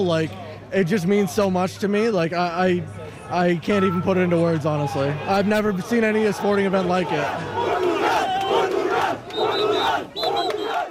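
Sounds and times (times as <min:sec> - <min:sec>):
speech: 0:00.0 - 0:07.8
football crowd roaring at Portugal's win over Croatia in Toronto: 0:04.8 - 0:10.8.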